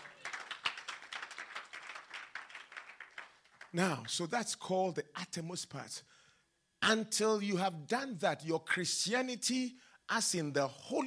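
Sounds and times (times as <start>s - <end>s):
audience clapping: 0.0s - 4.3s
speech: 3.7s - 6.2s, 6.9s - 11.0s.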